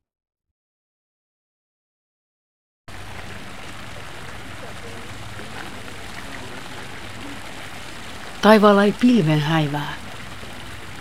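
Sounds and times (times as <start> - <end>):
water splashing in a garden fountain in a goldfish pond: 2.9 - 10.9
speech: 8.4 - 10.0.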